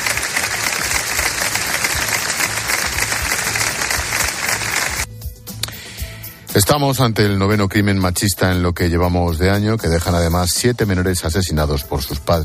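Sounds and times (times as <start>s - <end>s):
applause from neighbours in town square: 0.0s - 5.1s
speech: 6.6s - 12.4s.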